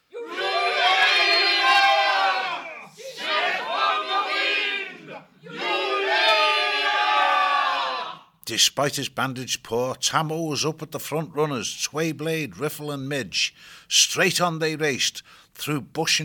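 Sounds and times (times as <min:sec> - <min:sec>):
crowd roaring a war cry: 0:00.1 - 0:08.3
speech: 0:08.5 - 0:16.2.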